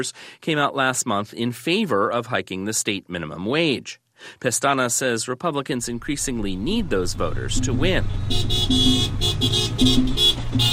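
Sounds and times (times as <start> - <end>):
speech: 0.0 - 10.7
engine hum: 5.8 - 10.7
car horns honking from a 60-car caravan in Orlando: 7.5 - 10.7.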